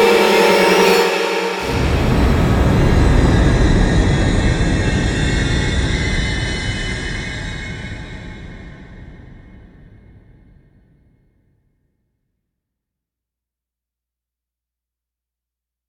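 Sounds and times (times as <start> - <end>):
heavy tension ambient music: 0.0 - 9.4
soft explosion: 1.6 - 10.8.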